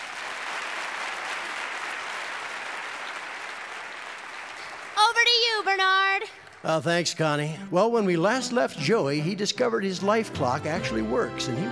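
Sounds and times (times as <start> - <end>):
audience applause: 0.0 - 7.0
speech: 5.2 - 11.7.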